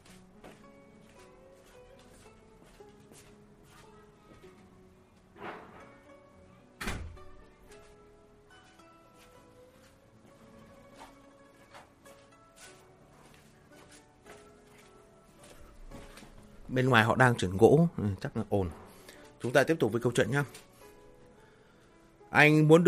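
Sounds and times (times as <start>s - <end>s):
door being shut: 6.8s - 7.4s
speech: 16.7s - 18.8s, 19.4s - 20.7s, 22.3s - 22.8s.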